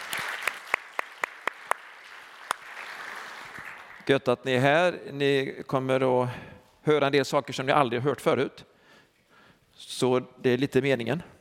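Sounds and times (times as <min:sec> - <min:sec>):
audience applause: 0:00.0 - 0:04.1
speech: 0:04.0 - 0:08.7, 0:09.8 - 0:11.3.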